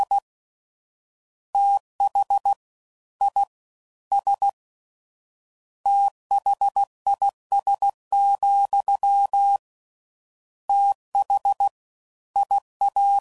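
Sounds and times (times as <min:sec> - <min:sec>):
fast Morse code groups at 15 words per minute: 0:01.6 - 0:02.6, 0:03.2 - 0:03.5, 0:04.1 - 0:04.6, 0:05.9 - 0:09.6, 0:10.7 - 0:11.7, 0:12.4 - 0:13.1.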